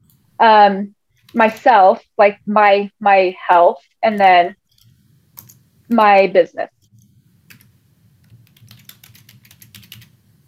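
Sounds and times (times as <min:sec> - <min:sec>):
low hum: 0:00.0 - 0:10.4
speech: 0:00.4 - 0:04.6, 0:05.9 - 0:06.8
typing notes on a computer keyboard: 0:04.2 - 0:05.6, 0:06.9 - 0:10.2.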